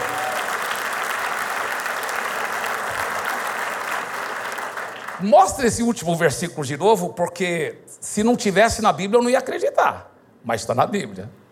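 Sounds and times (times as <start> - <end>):
audience round of applause: 0.0 - 5.6
speech: 5.2 - 11.4.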